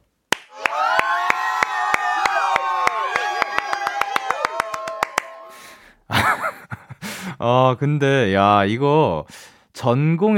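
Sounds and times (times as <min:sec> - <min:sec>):
audience clapping: 0:00.3 - 0:05.7
laughter: 0:06.1 - 0:07.2
speech: 0:07.4 - 0:10.3.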